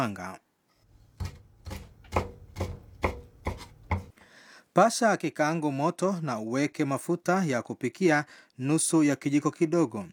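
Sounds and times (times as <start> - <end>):
speech: 0.0 - 0.4, 4.8 - 10.1
knife chopping prawns into one-centimetre pieces on a board: 0.9 - 4.2.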